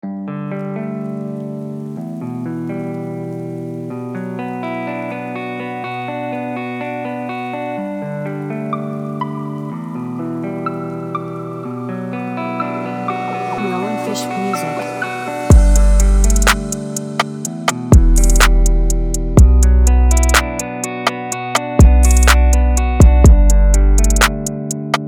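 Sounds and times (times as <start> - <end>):
instrumental type beat: 12.8 - 25.0.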